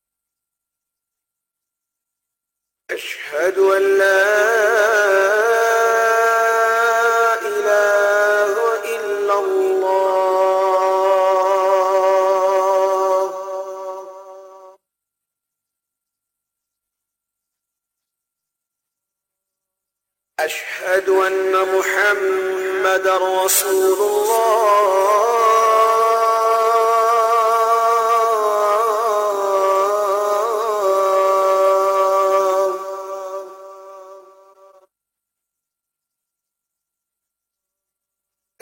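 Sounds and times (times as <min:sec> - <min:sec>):
Azan call to prayer: 0:02.9 - 0:14.8, 0:20.4 - 0:34.9.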